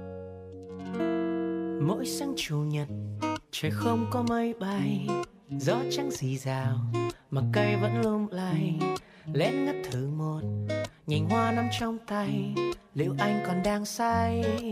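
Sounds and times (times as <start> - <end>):
pop song music intro: 0.9 - 14.6
speech: 1.9 - 14.6.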